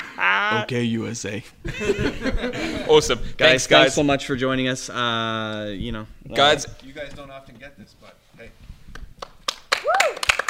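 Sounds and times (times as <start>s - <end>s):
speech: 0.5s - 8.7s
laughter: 1.6s - 3.2s
small live audience applause: 9.0s - 10.4s
person whooping: 9.8s - 10.3s.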